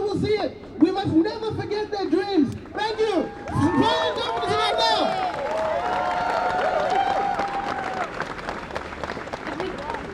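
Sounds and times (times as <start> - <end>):
speech: 0.2 - 3.1
audience applause: 2.8 - 10.1.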